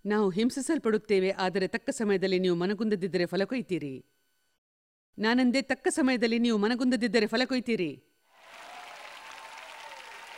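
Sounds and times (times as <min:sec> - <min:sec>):
speech: 0:00.0 - 0:04.2, 0:05.2 - 0:08.1
audience applause: 0:08.4 - 0:10.3.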